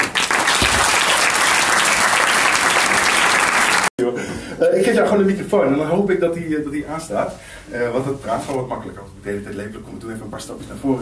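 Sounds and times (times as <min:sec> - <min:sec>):
warm audience applause: 0:00.0 - 0:03.9
speech: 0:04.8 - 0:11.0.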